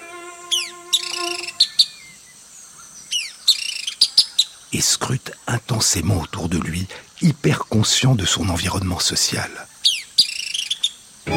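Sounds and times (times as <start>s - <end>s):
small bird's high-pitched whistled call: 0.4s - 2.4s, 3.0s - 4.5s, 9.8s - 11.0s
speech: 4.8s - 9.7s.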